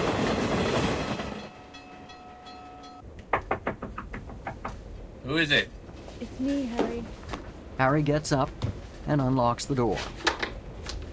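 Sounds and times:
train rumbling through a level crossing at night: 0.0s - 10.0s
train wheels clattering on rails: 0.0s - 11.1s
sustained ringing tones: 1.4s - 3.1s
speech: 5.3s - 7.2s, 7.8s - 10.3s.

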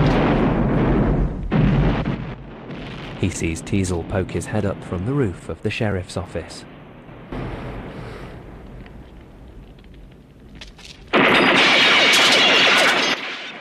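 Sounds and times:
low rumbling: 0.0s - 11.2s
speech: 3.2s - 6.7s
rapid gunfire shooting out sheriff's office windows in a film: 11.2s - 13.6s.

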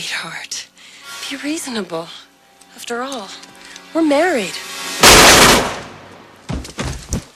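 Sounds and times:
speech: 0.0s - 0.6s, 1.3s - 5.2s
sharp bangs: 4.8s - 6.2s
gunshot: 5.0s - 6.0s.

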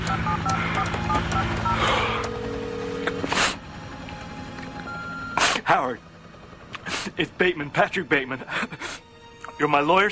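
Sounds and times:
telephone touch-tone beeps as a phone number is keyed in: 0.0s - 3.2s, 4.8s - 5.4s
steady low hum: 0.0s - 9.3s
speech: 5.7s - 6.1s, 7.1s - 9.0s, 9.6s - 10.0s.

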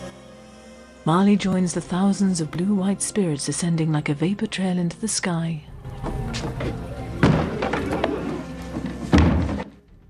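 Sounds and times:
speech: 1.0s - 5.7s, 6.3s - 6.9s
wooden shutters slammed shut: 6.0s - 9.8s.

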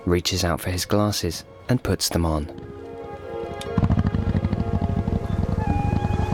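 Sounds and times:
speech: 0.1s - 2.7s
motorbike engine: 3.8s - 6.2s.

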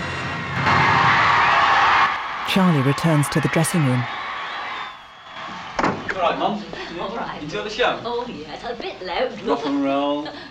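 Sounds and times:
concert crowd clapping and cheering: 0.0s - 6.3s
speech: 2.5s - 4.2s, 6.2s - 10.4s.

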